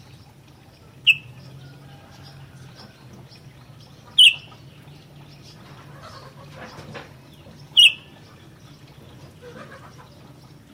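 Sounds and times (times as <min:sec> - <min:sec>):
sooty-headed bulbul sharp bright calls: 0:04.2 - 0:04.5, 0:07.8 - 0:08.1.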